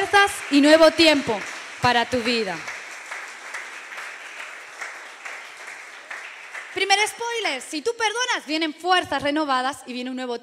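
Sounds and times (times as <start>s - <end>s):
crowd clapping: 0.0s - 7.8s
speech: 0.2s - 2.7s, 6.8s - 10.4s.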